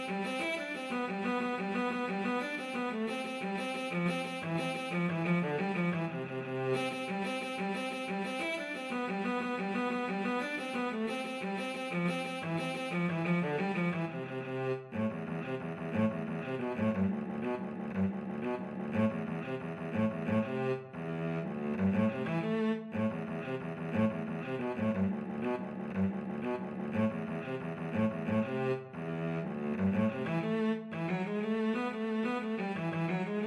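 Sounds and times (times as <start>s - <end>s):
cello duet playing Irish jig medley: 0.0s - 33.4s.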